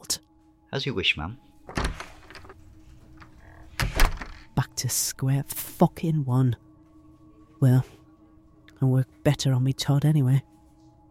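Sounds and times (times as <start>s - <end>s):
speech: 0.0s - 1.8s, 4.8s - 6.6s, 7.6s - 8.0s, 8.8s - 10.6s
low steady hum: 0.0s - 11.1s
door closing: 1.7s - 4.6s.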